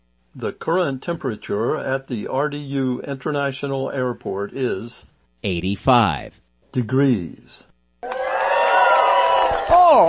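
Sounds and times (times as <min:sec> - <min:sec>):
speech: 0:00.4 - 0:08.2
high whoop: 0:08.0 - 0:10.0
studio audience cheering: 0:08.0 - 0:10.0.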